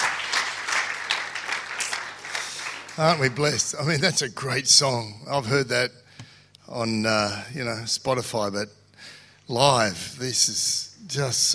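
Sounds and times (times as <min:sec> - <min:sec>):
audience clapping: 0:00.0 - 0:04.2
speech: 0:03.0 - 0:06.0, 0:06.7 - 0:11.5.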